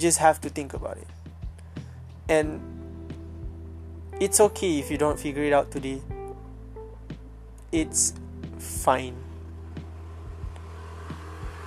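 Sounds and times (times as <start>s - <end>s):
speech: 0.0s - 1.3s, 2.3s - 2.8s, 4.2s - 6.1s, 7.7s - 9.2s
motorcycle engine: 8.4s - 11.6s.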